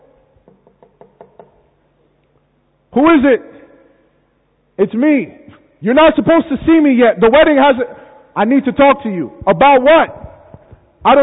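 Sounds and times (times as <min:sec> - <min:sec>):
knuckles knocking on a door on a wedding day: 0:00.4 - 0:01.6
speech: 0:03.0 - 0:03.5, 0:04.8 - 0:10.2, 0:11.0 - 0:11.2.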